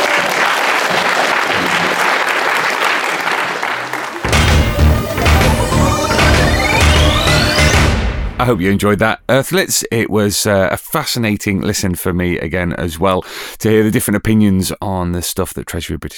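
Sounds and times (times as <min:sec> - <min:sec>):
audience applause: 0:00.0 - 0:08.0
speech: 0:08.4 - 0:16.1.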